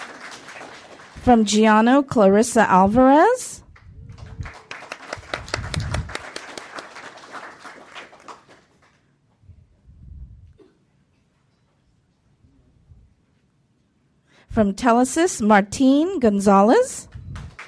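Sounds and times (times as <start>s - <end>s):
audience clapping: 0.0s - 1.4s, 3.7s - 9.1s, 17.3s - 17.6s
speech: 1.2s - 3.5s, 14.6s - 17.1s.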